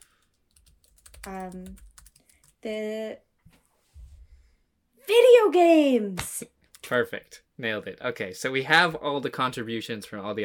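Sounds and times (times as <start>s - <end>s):
keyboard typing as a message is written: 0.0s - 2.6s
speech: 1.2s - 1.9s, 2.6s - 3.3s, 5.1s - 10.4s.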